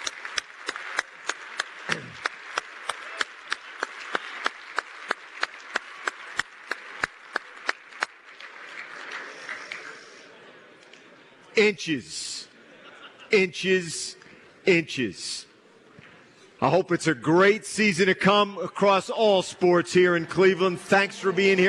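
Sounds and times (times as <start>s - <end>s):
rhythmic audience clapping: 0.0s - 9.9s
crowd noise: 0.0s - 21.6s
speech: 11.6s - 12.3s, 13.3s - 15.5s, 16.6s - 21.6s
laughter: 11.8s - 14.3s.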